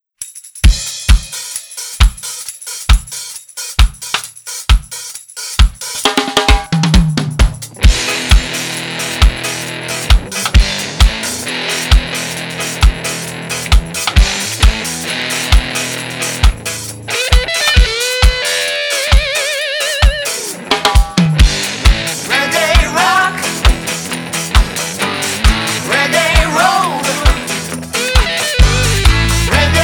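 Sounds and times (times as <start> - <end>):
reggae rock music: 0.7 - 29.8.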